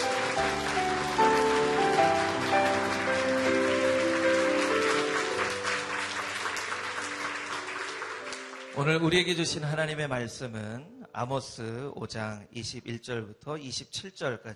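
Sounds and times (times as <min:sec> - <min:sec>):
audience clapping: 0:00.0 - 0:09.6
sustained musical tone: 0:00.0 - 0:10.0
speech: 0:09.0 - 0:14.5.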